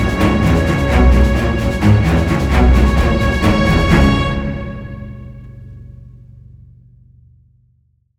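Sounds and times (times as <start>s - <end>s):
orchestral music: 0.0s - 5.6s.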